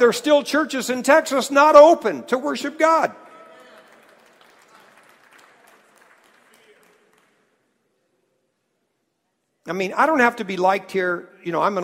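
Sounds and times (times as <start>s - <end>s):
speech: 0.0s - 3.3s, 9.7s - 11.8s
audience clapping: 3.1s - 7.8s.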